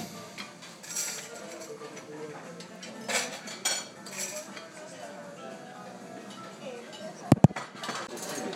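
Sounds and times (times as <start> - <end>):
cutlery and dishes clinking at a breakfast table: 0.4 - 4.8, 6.2 - 8.5
murmur of voices: 1.2 - 8.5.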